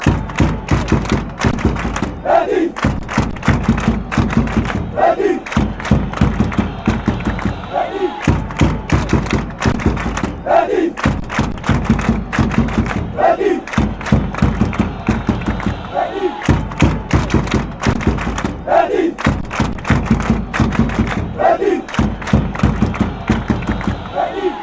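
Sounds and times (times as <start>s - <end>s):
football fans chanting: 0.0s - 24.6s.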